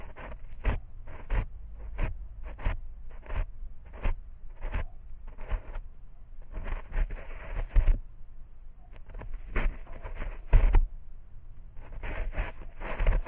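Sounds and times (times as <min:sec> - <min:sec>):
ear picking scratching and rustling strokes: 0:00.0 - 0:05.8, 0:06.4 - 0:08.0, 0:08.9 - 0:10.9, 0:11.8 - 0:13.2
faint low rumble: 0:00.0 - 0:13.2.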